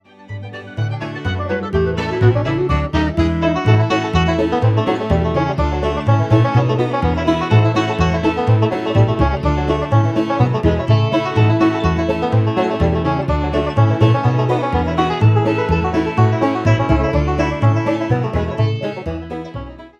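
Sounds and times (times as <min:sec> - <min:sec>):
banjo bluegrass polka: 0:00.0 - 0:19.9.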